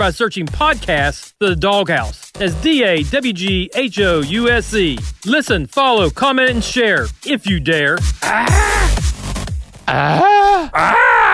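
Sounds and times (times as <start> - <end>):
speech: 0.0 - 9.0, 9.9 - 11.1
man screaming in a recorded ad: 8.2 - 9.0, 9.9 - 11.3.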